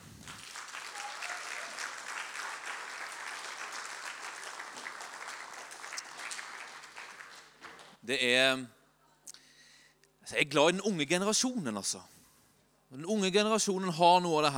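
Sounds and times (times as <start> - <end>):
audience applause: 0.0 - 8.0
speech: 8.1 - 8.8, 10.3 - 12.2, 12.9 - 14.5.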